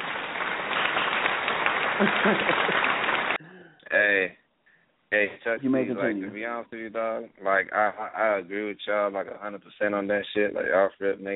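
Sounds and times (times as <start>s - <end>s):
hand clapping: 0.0s - 3.4s
laughter: 1.8s - 3.4s, 5.5s - 9.3s
speech: 2.0s - 2.8s, 5.1s - 11.3s.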